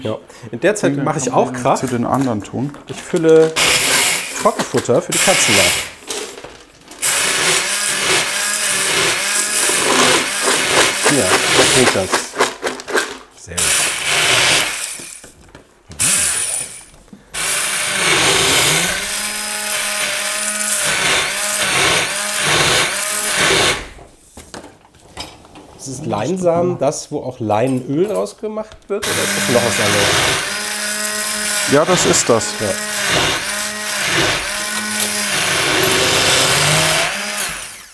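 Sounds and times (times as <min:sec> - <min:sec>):
speech: 0:00.0 - 0:03.8, 0:04.4 - 0:05.9, 0:11.2 - 0:12.3, 0:13.5 - 0:13.7, 0:26.2 - 0:30.5, 0:31.7 - 0:33.2
immersion blender pureeing food: 0:03.5 - 0:06.1, 0:07.0 - 0:13.0, 0:13.6 - 0:24.0, 0:29.0 - 0:37.9.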